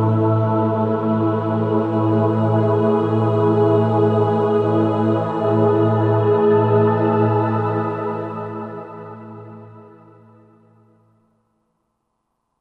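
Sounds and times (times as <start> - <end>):
milky choir from Roland SR-JV80-13 Vocal Collection: 0.0 - 10.0.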